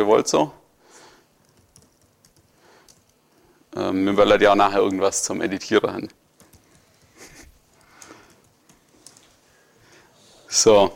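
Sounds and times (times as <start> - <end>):
speech: 0.0 - 0.6, 3.7 - 6.2, 10.6 - 10.9
typing on a computer keyboard: 1.4 - 3.3, 6.3 - 9.4.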